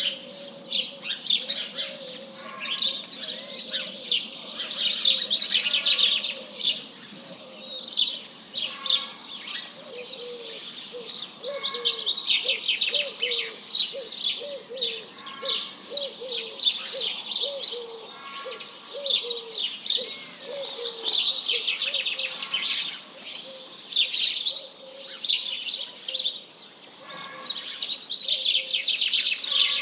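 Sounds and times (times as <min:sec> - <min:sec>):
birds: 0:00.0 - 0:29.8.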